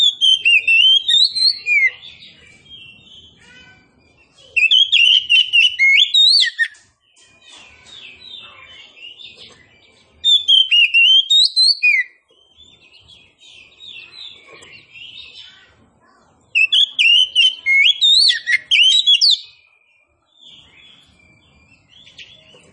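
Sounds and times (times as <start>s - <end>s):
Oriental magpie-robin of the form kacer poci singing loud varied whistles and trills: 0.0s - 15.6s, 16.5s - 22.7s.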